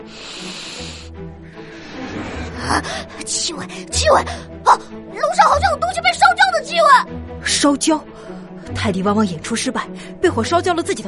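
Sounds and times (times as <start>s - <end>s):
hard sniff through the nose: 0.0s - 2.6s
speech: 2.6s - 11.0s.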